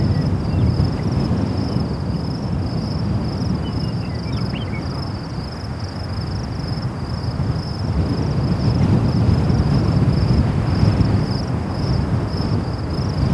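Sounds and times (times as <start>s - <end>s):
crickets chirping at night: 0.0s - 13.3s.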